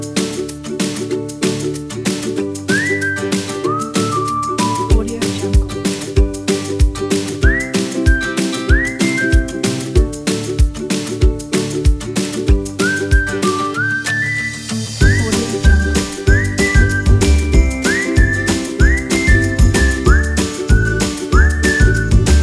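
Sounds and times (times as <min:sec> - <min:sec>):
folk ukulele: 0:00.0 - 0:22.4
folk whistle: 0:02.7 - 0:05.5, 0:07.4 - 0:10.0, 0:12.8 - 0:22.4
folk bells: 0:15.0 - 0:21.8.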